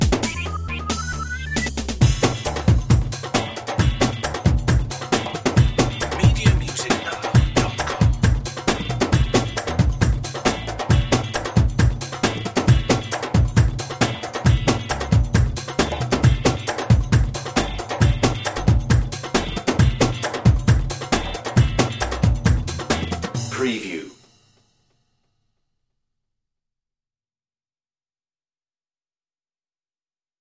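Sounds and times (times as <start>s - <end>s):
oriental dance party music without leads: 0.0s - 24.3s.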